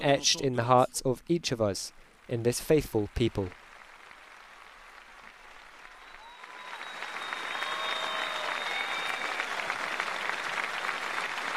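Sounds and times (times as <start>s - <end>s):
speech: 0.0s - 3.6s
audience applause: 2.8s - 11.5s.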